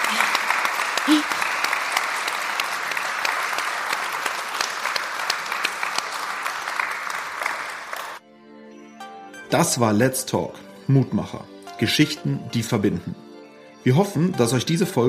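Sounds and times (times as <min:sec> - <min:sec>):
clapping: 0:00.0 - 0:08.2
speech: 0:09.6 - 0:13.2, 0:13.8 - 0:15.0.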